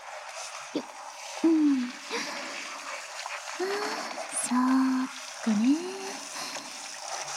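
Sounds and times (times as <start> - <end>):
water running while rinsing and washing: 0.3 - 7.2
brief voiced sounds: 0.8 - 2.4, 3.6 - 6.7.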